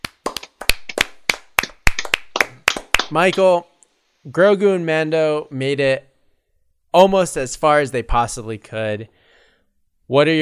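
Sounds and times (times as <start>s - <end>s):
small group clapping hands: 0.0s - 3.6s
speech: 3.1s - 6.1s, 6.9s - 9.2s, 10.1s - 10.4s.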